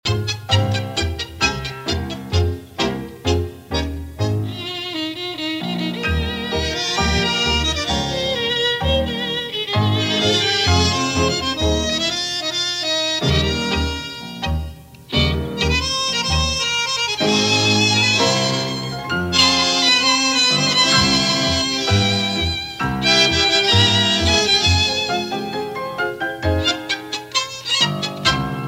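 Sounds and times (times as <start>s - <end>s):
tango music: 0.0s - 28.6s.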